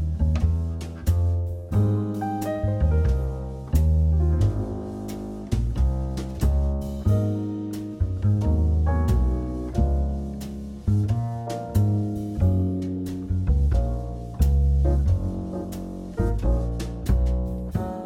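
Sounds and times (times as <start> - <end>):
major two five one chord progressions in swing: 0.0 - 18.0.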